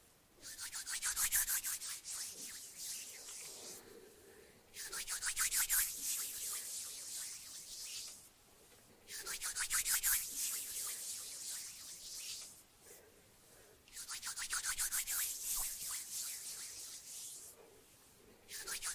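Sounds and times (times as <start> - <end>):
hands fluttering fingers around a mic: 0.4 - 3.8, 4.8 - 8.3, 9.1 - 12.6, 13.9 - 17.5, 18.5 - 18.9.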